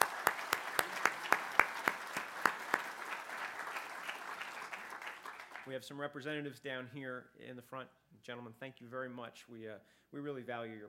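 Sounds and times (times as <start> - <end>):
audience applause: 0.0 - 5.7
speech: 5.7 - 10.8.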